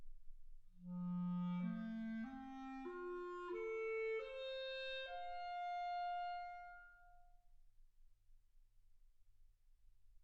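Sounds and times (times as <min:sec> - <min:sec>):
clarinet: 0:00.8 - 0:07.3.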